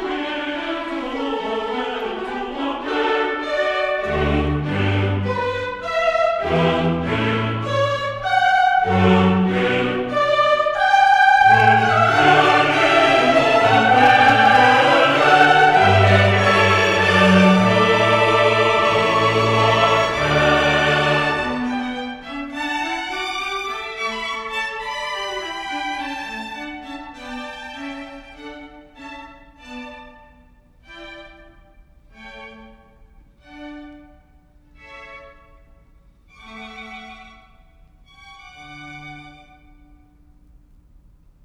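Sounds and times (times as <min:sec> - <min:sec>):
choir singing: 0:00.0 - 0:28.8.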